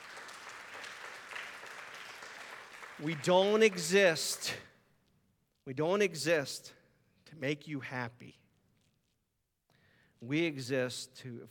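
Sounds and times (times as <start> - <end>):
audience applause: 0.0 - 4.1
speech: 3.0 - 4.7, 5.6 - 8.4, 10.2 - 11.4.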